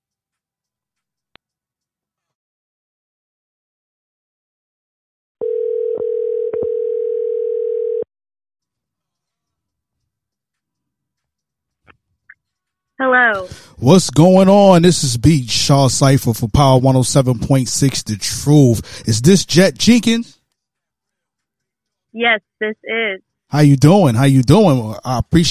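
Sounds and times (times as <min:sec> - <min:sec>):
telephone ringback tone: 0:05.4 - 0:08.1
speech: 0:13.0 - 0:20.4, 0:22.1 - 0:25.4.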